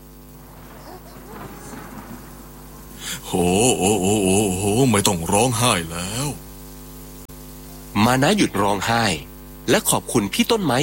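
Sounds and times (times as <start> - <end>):
low rumbling storm: 0.0 - 6.5
heavy rain: 0.0 - 9.1
speech: 3.3 - 6.4, 8.0 - 10.8.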